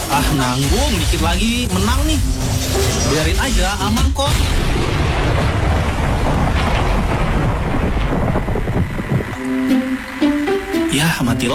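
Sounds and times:
speech: 0.1 - 5.6, 9.5 - 10.1, 10.9 - 11.5
deep rumbling thunder: 4.3 - 9.4
heavy rain in a thunderstorm: 4.6 - 10.2
humming tonal buzz: 7.2 - 11.5.

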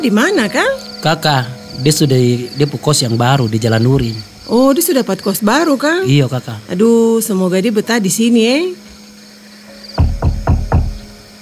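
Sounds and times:
speech: 0.0 - 8.9
knocking on a door: 10.0 - 11.2.

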